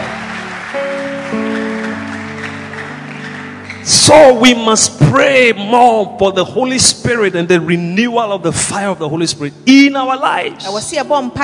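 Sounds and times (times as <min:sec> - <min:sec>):
audience clapping hands: 0:00.0 - 0:05.0
speech: 0:00.7 - 0:01.1, 0:04.1 - 0:11.4.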